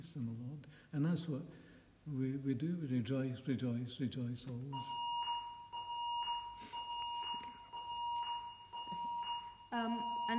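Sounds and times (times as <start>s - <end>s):
speech: 0.0s - 5.1s, 9.7s - 10.3s
alarm bell ringing: 4.9s - 10.3s.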